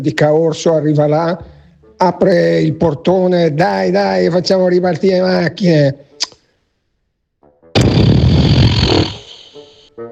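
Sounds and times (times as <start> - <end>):
speech: 0.0 - 6.4
blown raspberry: 7.8 - 9.8.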